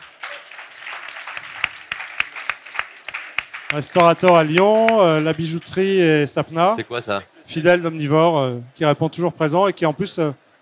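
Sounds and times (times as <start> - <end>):
audience applause: 0.0 - 6.1
speech: 3.7 - 10.4.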